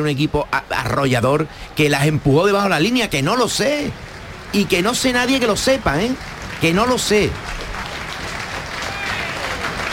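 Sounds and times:
speech: 0.0 - 7.6
stadium crowd standing and applauding: 2.7 - 9.9.

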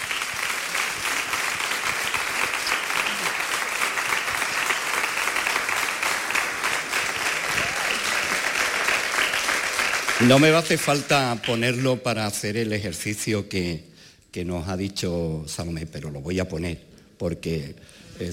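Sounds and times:
crowd audience applause: 0.0 - 12.0
speech: 10.2 - 18.3.

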